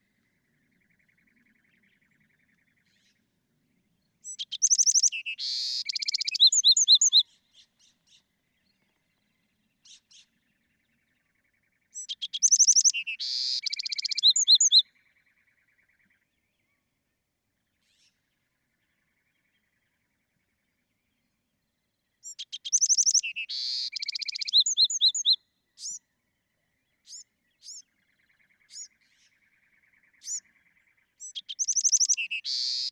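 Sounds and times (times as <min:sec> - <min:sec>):
Bewick's wren singing: 0:04.2 - 0:07.2, 0:11.9 - 0:14.8, 0:22.2 - 0:26.0, 0:27.0 - 0:32.8.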